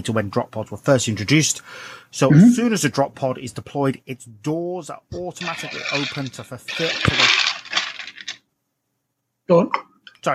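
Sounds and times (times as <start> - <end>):
speech: 0.0 - 7.4, 9.5 - 10.3
ice scooped from ice bucket: 5.4 - 8.4.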